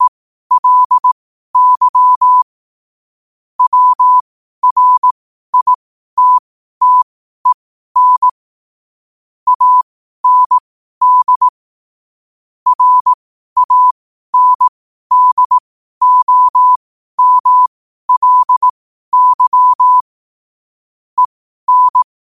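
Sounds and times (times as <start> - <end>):
morse code at 5 wpm: 0.0 - 2.4, 3.6 - 8.4, 9.5 - 11.5, 12.7 - 20.0, 21.2 - 22.1.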